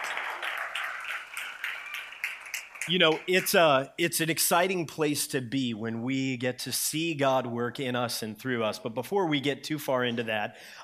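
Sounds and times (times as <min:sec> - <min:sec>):
faint audience applause at a church gathering: 0:00.0 - 0:03.7
speech: 0:02.9 - 0:10.8.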